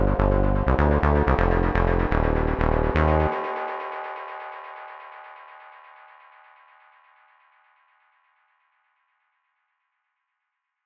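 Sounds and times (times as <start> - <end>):
saw bass synth: 0.0 - 3.3.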